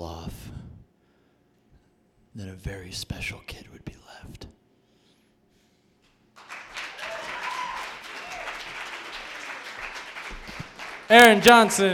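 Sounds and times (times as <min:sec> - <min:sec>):
speech: 0:02.4 - 0:04.5, 0:11.1 - 0:11.9
crowd applause: 0:06.4 - 0:11.9.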